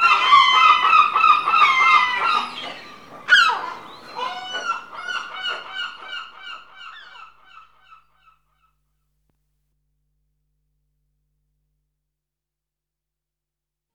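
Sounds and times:
seagulls calling in a rural exterior: 0.0 - 8.1.

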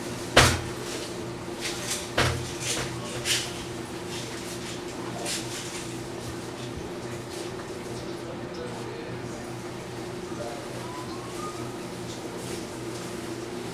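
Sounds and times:
public toilets ambience in New York City: 0.0 - 13.7.

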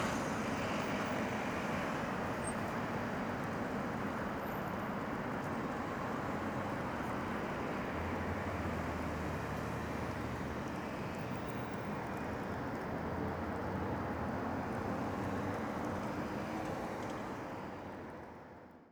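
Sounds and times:
city wind: 0.0 - 18.8.

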